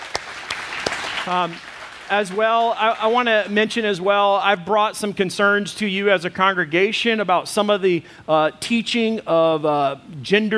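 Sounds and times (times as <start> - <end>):
audience applause: 0.0 - 3.5
speech: 1.2 - 10.5.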